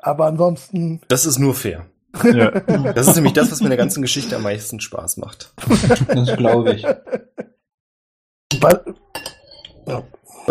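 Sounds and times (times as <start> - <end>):
speech: 0.0 - 7.4, 8.6 - 9.3, 9.9 - 10.4
laughter: 2.2 - 4.6, 5.6 - 7.5
cutlery clinking and scraping against dishes while eating: 8.5 - 9.8.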